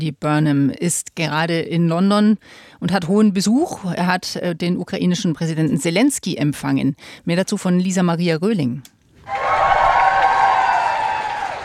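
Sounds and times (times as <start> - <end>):
speech: 0.0 - 9.5
applause as President Zelensky steps out of 10 Downing Street in London: 9.3 - 11.6.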